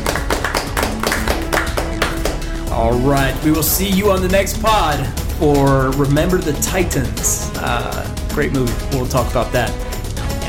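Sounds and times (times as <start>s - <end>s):
small round of applause: 0.0s - 2.6s
speech: 2.8s - 9.8s.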